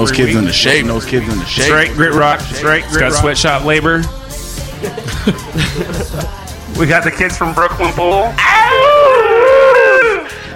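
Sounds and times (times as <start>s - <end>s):
speech: 0.0s - 4.2s, 4.8s - 9.2s
laughter: 4.6s - 6.6s
wolves howling: 8.4s - 10.3s.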